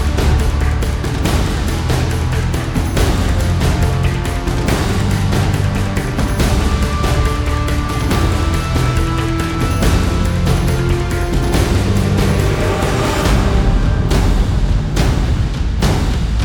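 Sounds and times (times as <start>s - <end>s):
percussion: 0.0s - 16.4s.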